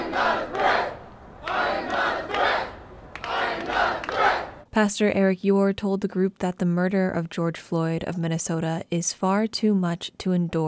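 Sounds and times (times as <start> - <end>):
crowd chanting: 0.0 - 4.6
speech: 4.8 - 10.6.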